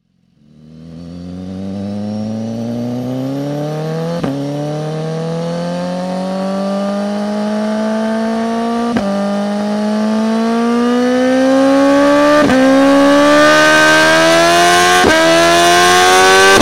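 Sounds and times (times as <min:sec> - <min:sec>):
BMW S1000 RR motorcycle engine: 0:00.0 - 0:16.6.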